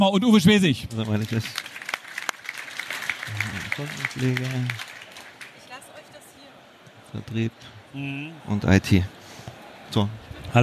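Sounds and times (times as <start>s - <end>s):
speech: 0.0s - 1.7s, 3.7s - 4.9s, 7.1s - 9.2s, 9.9s - 10.6s
audience applauding: 0.9s - 6.4s.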